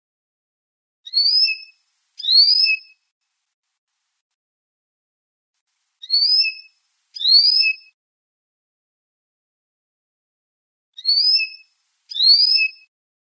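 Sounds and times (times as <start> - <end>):
canary singing trills and whistles: 1.1 - 3.0, 6.0 - 8.0, 11.0 - 12.9.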